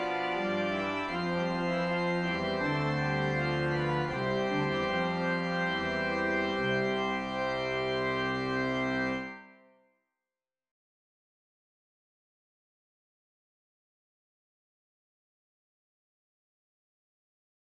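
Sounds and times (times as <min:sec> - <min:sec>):
organ arrangement of a trio for strings: 0:00.0 - 0:09.5.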